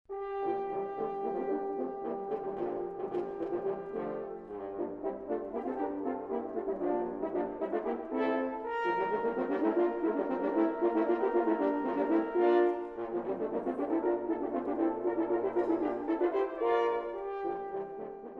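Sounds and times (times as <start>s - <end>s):
brass blast: 0.1s - 18.3s.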